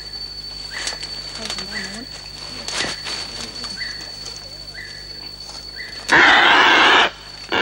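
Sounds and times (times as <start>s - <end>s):
faint chirps of bird in a mist net: 0.0s - 7.5s
rustling as bird is freed from a mist net: 0.7s - 4.6s
speech: 1.6s - 2.9s.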